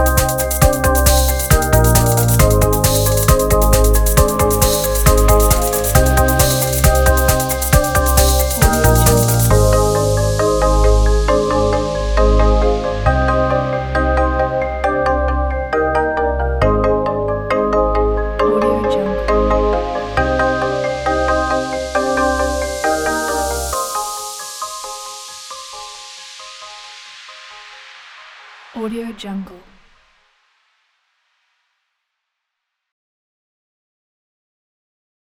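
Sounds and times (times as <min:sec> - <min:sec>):
driving upbeat music: 0:00.0 - 0:26.3.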